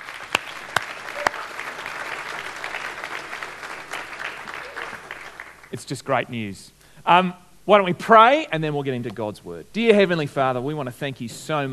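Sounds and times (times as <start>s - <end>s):
audience applause: 0.0s - 5.8s
speech: 5.8s - 11.7s.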